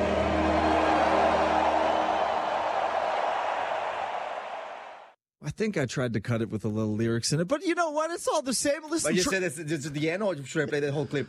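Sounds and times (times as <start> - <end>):
huge crowd roaring and cheering: 0.0 - 5.2
speech: 5.6 - 11.2.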